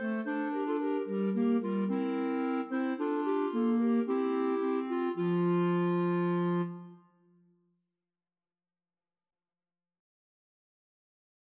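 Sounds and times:
clarinet trio: 0.0 - 7.0.

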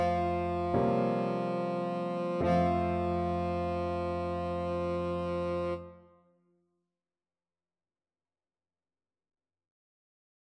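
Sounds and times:
tenor saxophone: 0.0 - 6.2.

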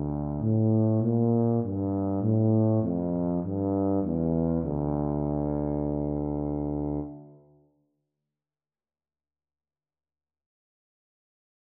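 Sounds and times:
tuba duet: 0.0 - 7.4.

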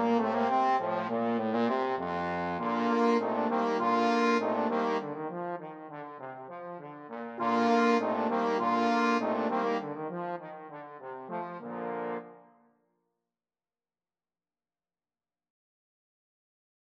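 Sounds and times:
trombone quartet playing: 0.0 - 12.4.

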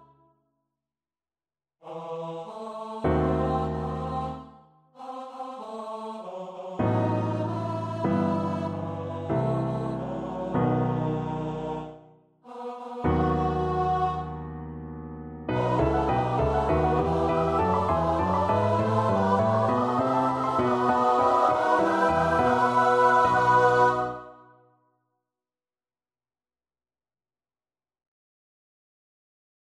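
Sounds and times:
choir singing: 1.8 - 14.7, 15.5 - 24.6.

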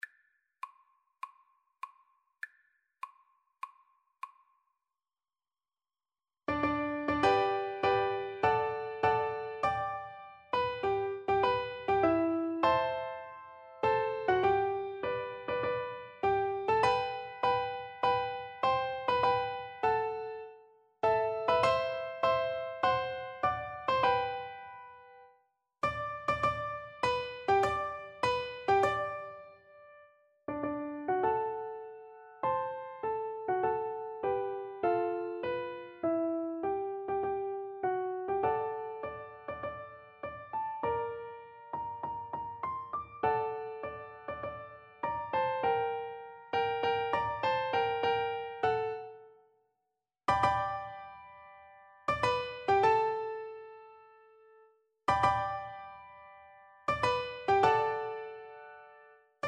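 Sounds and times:
piano duet: 6.5 - 49.4, 50.3 - 59.4.

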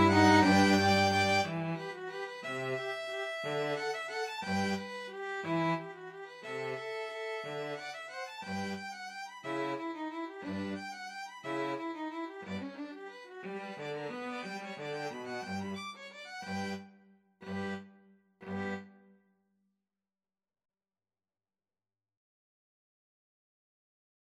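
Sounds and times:
cello: 0.0 - 15.8, 17.4 - 18.9
two violins: 0.0 - 16.8, 17.4 - 18.9.

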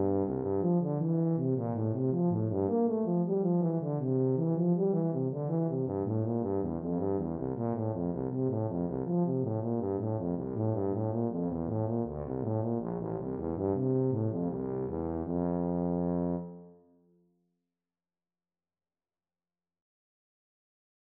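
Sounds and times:
tuba playing baroque bourree: 0.0 - 16.8.

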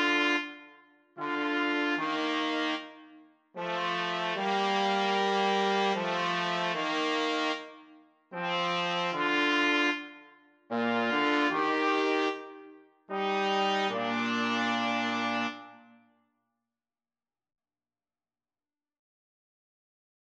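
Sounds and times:
two trumpets: 0.0 - 7.8, 8.4 - 16.0
trombone: 1.2 - 3.0, 3.6 - 7.7, 8.4 - 10.1, 10.7 - 12.5, 13.1 - 15.8.

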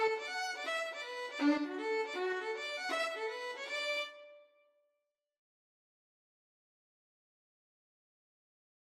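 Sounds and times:
violin: 0.0 - 4.6.

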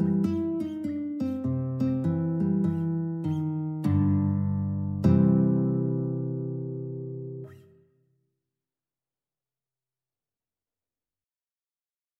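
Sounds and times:
guitar duet: 0.0 - 7.8.

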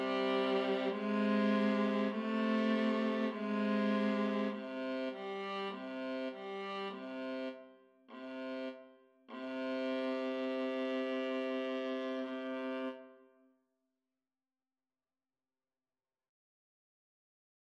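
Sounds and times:
viola duet: 0.0 - 7.5, 8.1 - 13.1.

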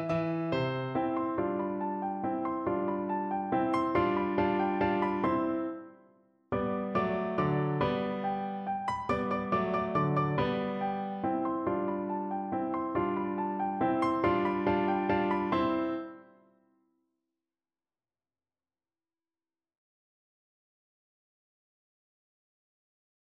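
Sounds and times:
German dance piece on piano: 0.0 - 16.4.

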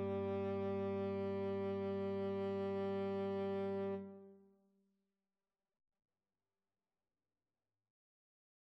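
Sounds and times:
tenor saxophone: 0.0 - 4.3.

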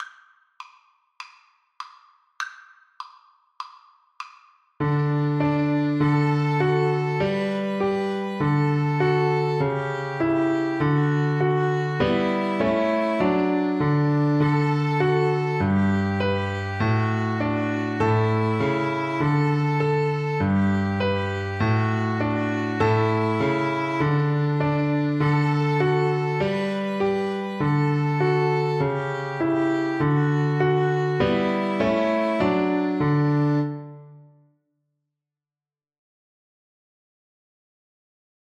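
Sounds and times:
piano trio: 4.8 - 34.2.

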